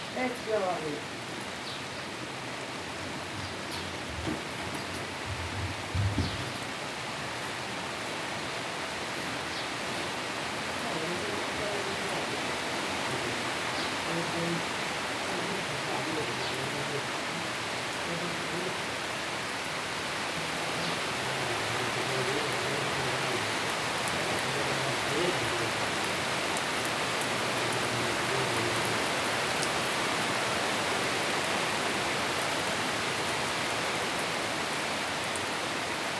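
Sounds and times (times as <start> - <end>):
summer storm rain pouring at Colle Castello, Tivoli: 0.0 - 36.1
speech: 0.2 - 1.2
low rumbling undertone: 2.8 - 6.8.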